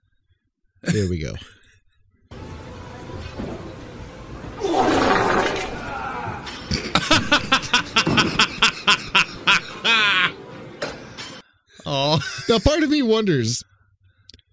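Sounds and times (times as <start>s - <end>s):
speech: 0.8s - 1.6s, 11.9s - 13.7s
meme fart sound effect: 4.6s - 5.9s
laughter: 6.4s - 10.4s, 11.9s - 13.0s.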